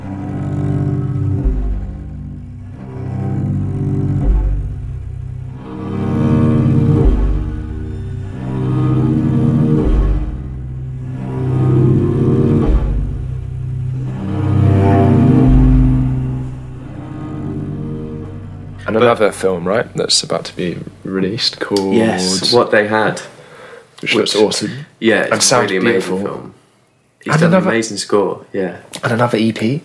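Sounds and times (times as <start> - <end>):
growly cello playing long bowed notes: 0.0 - 22.4
speech: 18.9 - 23.3, 24.0 - 26.6, 27.2 - 29.8.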